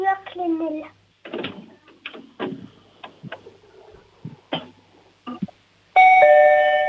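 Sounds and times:
doorbell ringing: 6.0 - 6.8.

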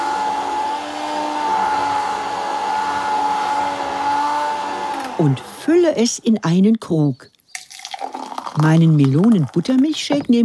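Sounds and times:
immersion blender mixing a drink: 0.0 - 5.7, 7.7 - 10.2
speech: 5.2 - 7.3, 8.6 - 10.4.

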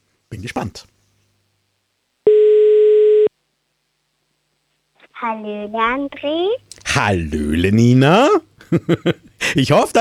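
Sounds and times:
speech: 0.3 - 0.9, 5.2 - 9.9
telephone call ringing tone after dialing: 2.3 - 3.3.

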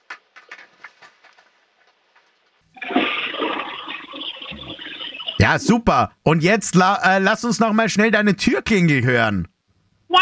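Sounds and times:
household toilet flushing: 2.8 - 6.1
speech: 5.5 - 9.5.

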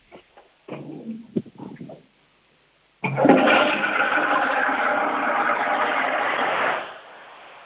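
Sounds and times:
toilet flush: 3.0 - 7.6.

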